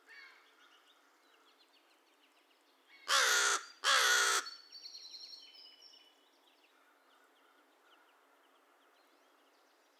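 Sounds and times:
American crow uttering raspy caws: 0:03.1 - 0:04.5.

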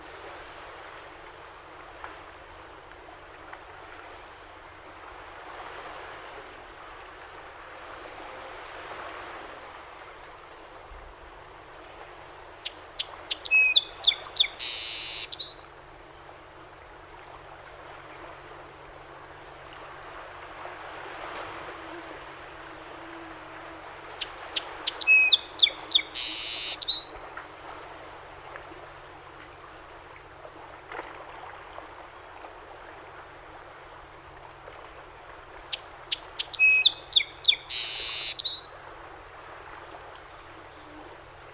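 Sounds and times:
background hiss: 0:00.0 - 0:41.5
song sparrow song: 0:12.6 - 0:15.7, 0:24.2 - 0:27.2, 0:35.7 - 0:38.8.

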